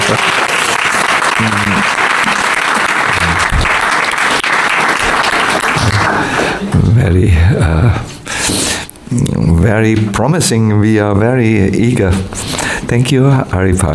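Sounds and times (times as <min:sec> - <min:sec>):
audience applause: 0:00.0 - 0:06.7
speech: 0:07.1 - 0:13.9.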